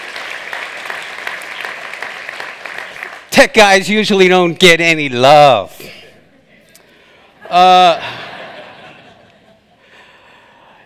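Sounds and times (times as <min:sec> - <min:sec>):
audience applause: 0:00.0 - 0:03.3
speech: 0:03.4 - 0:06.0, 0:07.5 - 0:08.2
laughter: 0:07.4 - 0:09.8.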